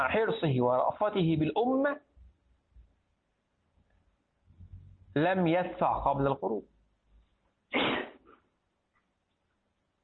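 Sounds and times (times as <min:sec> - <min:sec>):
speech: 0:00.0 - 0:02.1, 0:05.2 - 0:06.7
person sneezing: 0:07.7 - 0:08.4.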